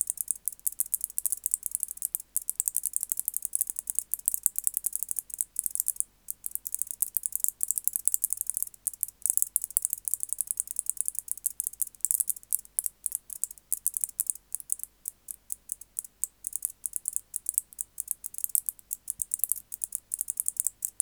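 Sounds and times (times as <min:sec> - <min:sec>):
white-faced bush-cricket stridulating: 0:00.0 - 0:21.0.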